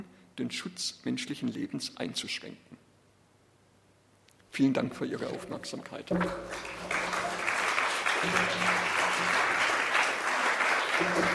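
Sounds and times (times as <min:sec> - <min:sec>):
speech: 0:00.0 - 0:02.7, 0:04.5 - 0:06.9, 0:08.2 - 0:09.5, 0:11.0 - 0:11.3
audience applause after lecture: 0:06.4 - 0:11.3.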